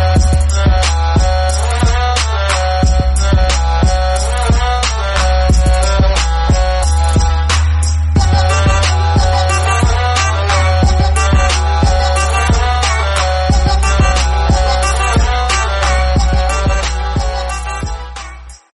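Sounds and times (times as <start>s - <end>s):
instrumental ringtone: 0.2s - 7.5s, 8.2s - 18.6s.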